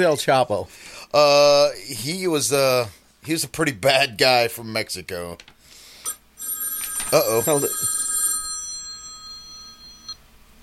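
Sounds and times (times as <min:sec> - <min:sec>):
speech: 0:00.0 - 0:05.5, 0:07.1 - 0:07.9
telephone ringing: 0:06.1 - 0:10.2.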